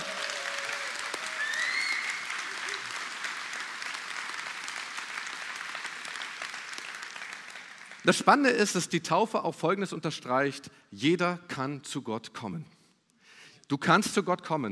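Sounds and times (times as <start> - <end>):
whistles or cheers: 0.0 - 2.8
audience applause: 0.0 - 8.2
speech: 8.0 - 12.8, 13.7 - 14.7.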